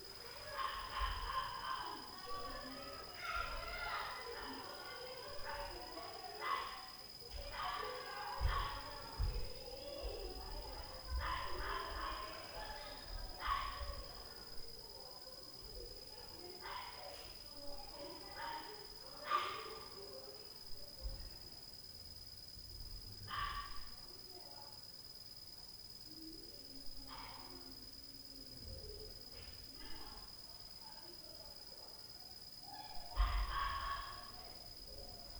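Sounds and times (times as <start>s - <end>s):
children at night: 0.0s - 21.8s, 22.8s - 35.3s
dog at night: 0.4s - 2.0s, 11.1s - 12.3s, 13.3s - 14.2s, 19.2s - 19.9s, 23.2s - 23.9s, 27.1s - 27.5s, 32.8s - 34.5s.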